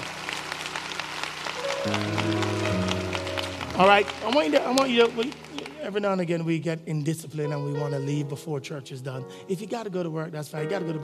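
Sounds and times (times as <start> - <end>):
audience applause: 0.0 - 6.4
speech: 1.8 - 2.4, 3.8 - 11.0.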